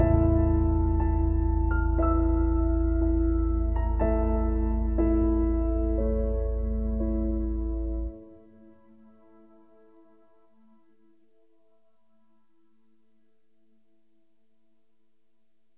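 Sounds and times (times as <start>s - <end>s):
piano music: 0.0s - 11.4s.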